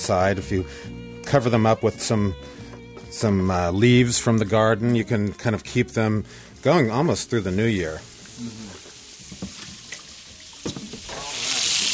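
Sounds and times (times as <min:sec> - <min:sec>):
speech: 0:00.0 - 0:08.8
duck organ meats sizzling in a pan: 0:07.4 - 0:11.9.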